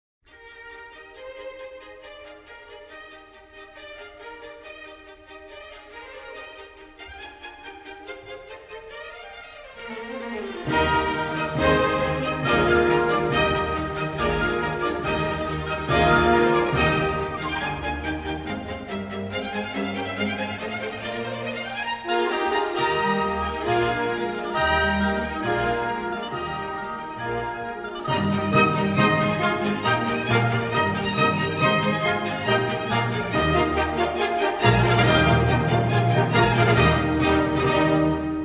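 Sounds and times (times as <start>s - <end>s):
trumpet concerto: 10.6s - 38.4s.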